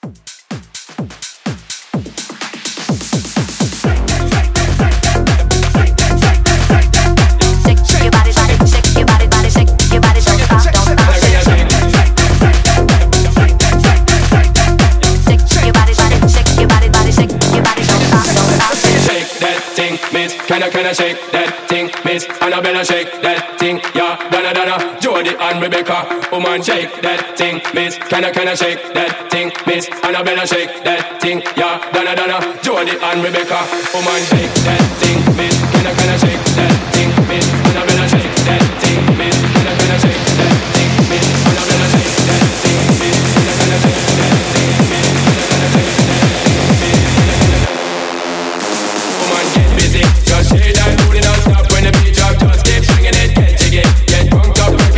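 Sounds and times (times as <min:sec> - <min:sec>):
clean club hype music: 0:00.0 - 0:54.9.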